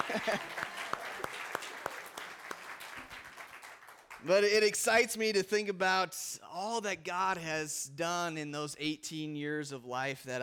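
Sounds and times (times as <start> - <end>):
laughter: 0.0 - 1.4
audience applause: 0.0 - 4.5
speech: 0.1 - 0.7, 4.2 - 10.4.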